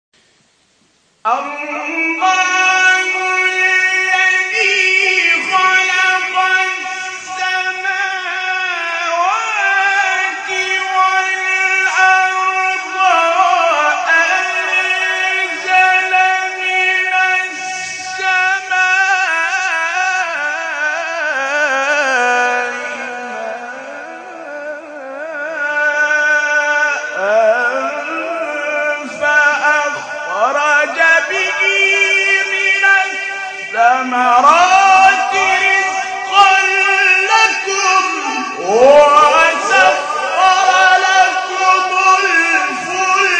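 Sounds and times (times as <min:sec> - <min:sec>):
Quran recitation: 0:01.2 - 0:43.3.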